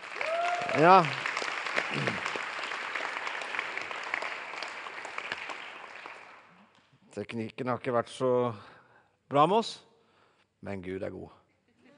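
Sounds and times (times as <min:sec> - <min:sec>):
audience applause: 0:00.0 - 0:06.5
speech: 0:00.7 - 0:01.2, 0:01.9 - 0:02.3, 0:07.2 - 0:08.7, 0:09.3 - 0:09.9, 0:10.6 - 0:11.4.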